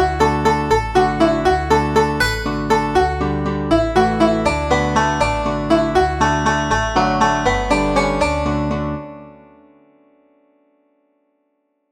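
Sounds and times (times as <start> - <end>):
Irish banjo playing a traditional jig: 0.0 - 9.4.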